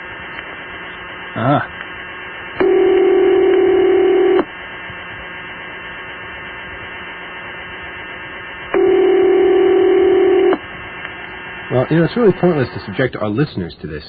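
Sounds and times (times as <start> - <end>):
speech: 1.4 - 1.8, 11.9 - 14.0
faint phone line hiss and hum: 2.5 - 4.5, 8.7 - 10.6
telephone ringback tone over a phone line: 2.6 - 4.4, 8.8 - 10.6.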